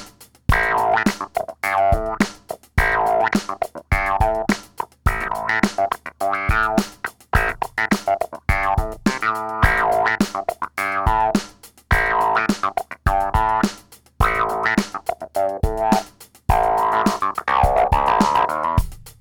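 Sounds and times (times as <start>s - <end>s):
funky clavinet riff with wah and preamp distortion: 0.5s - 18.9s.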